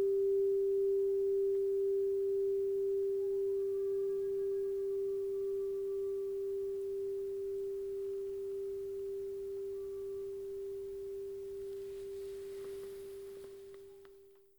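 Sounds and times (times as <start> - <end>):
7-inch crystal bowl in G: 0.0 - 14.2.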